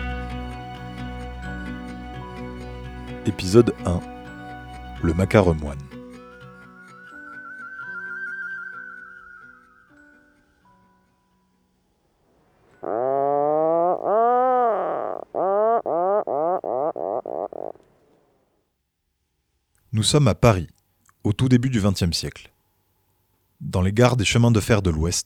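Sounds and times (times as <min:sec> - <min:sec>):
background music: 0:00.0 - 0:08.3
Atlantic puffin calling: 0:03.2 - 0:04.2, 0:12.8 - 0:18.4
speech: 0:03.2 - 0:04.2, 0:05.0 - 0:06.0, 0:20.0 - 0:22.6, 0:23.7 - 0:25.2.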